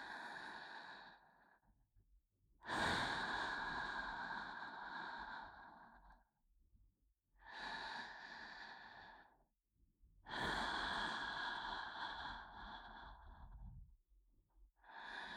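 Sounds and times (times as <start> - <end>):
binaural ASMR breathing in the right ear: 0.0 - 1.7, 2.7 - 6.3, 7.5 - 9.4, 10.3 - 14.0, 14.8 - 15.3.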